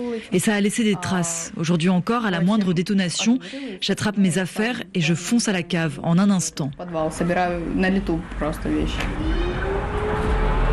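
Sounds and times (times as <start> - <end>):
speech: 0.0 - 9.5
sirens: 9.4 - 10.7.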